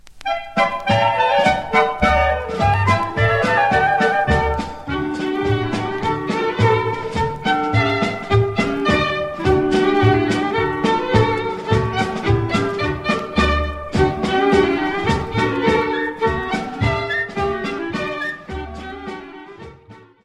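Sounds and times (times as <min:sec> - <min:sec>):
folk dance tune: 0:00.0 - 0:20.2.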